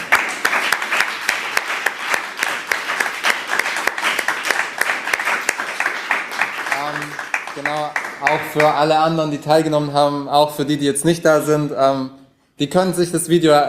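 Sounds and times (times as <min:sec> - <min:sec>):
audience applauding the winners of a competition: 0:00.0 - 0:09.2
speech: 0:07.6 - 0:13.6.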